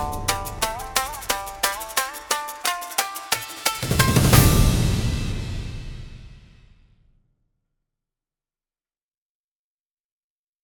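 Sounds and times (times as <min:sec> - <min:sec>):
cinematic Japanese-style thunder drums for battles: 0:00.0 - 0:02.2, 0:03.6 - 0:07.0.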